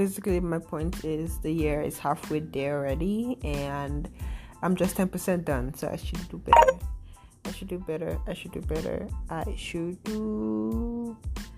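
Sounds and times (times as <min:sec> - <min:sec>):
speech: 0:00.0 - 0:11.5
mobile phone tone: 0:06.5 - 0:06.8.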